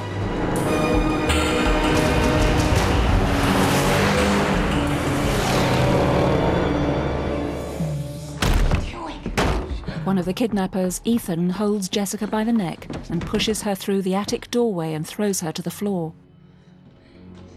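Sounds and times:
4x4 and van engines driving up a dusty countryside track: 0.2 - 8.3
speech: 10.1 - 16.2.

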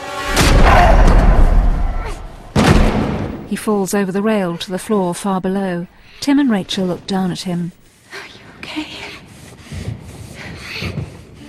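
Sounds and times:
rifle smashed against a man's head: 0.2 - 3.5
speech: 3.5 - 8.9.

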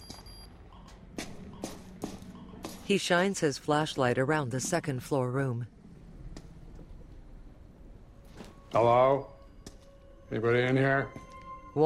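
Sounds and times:
footsteps climbing stairs in a burnt building: 0.7 - 2.9
speech: 2.9 - 5.8, 8.7 - 9.4, 10.3 - 11.2.

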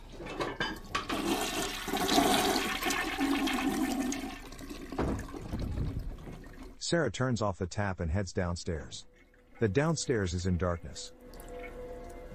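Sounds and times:
toilet flushing: 0.9 - 6.8
speech: 6.9 - 11.2.

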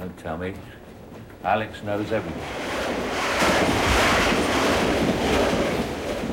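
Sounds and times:
speech: 0.2 - 0.8, 1.4 - 2.7
train rumbling over a bridge across a wide river: 1.9 - 6.3.

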